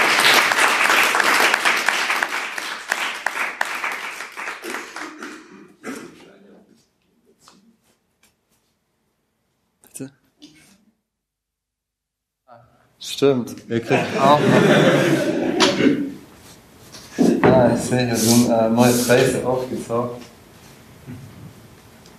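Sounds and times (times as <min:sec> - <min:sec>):
audience applause: 0:00.0 - 0:05.8
speech: 0:13.2 - 0:15.4, 0:17.8 - 0:20.3
laughter: 0:13.8 - 0:16.2.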